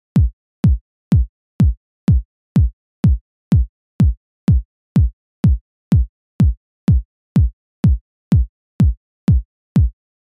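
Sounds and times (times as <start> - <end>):
EDM kick drum: 0.0 - 10.2.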